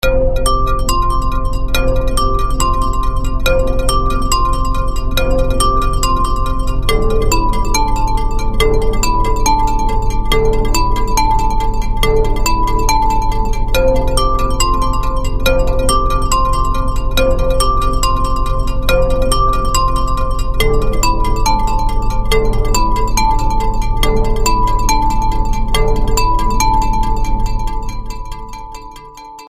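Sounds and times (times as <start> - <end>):
music: 0.0 - 29.4.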